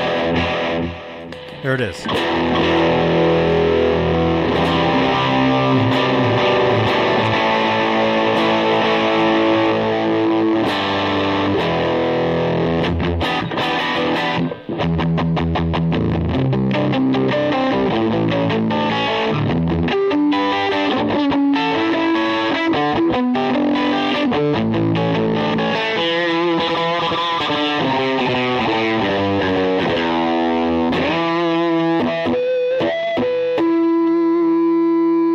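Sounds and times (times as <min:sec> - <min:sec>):
electric guitar through a Joyo Blue Rain pedal: 0:00.0 - 0:35.3
speech: 0:01.6 - 0:03.2.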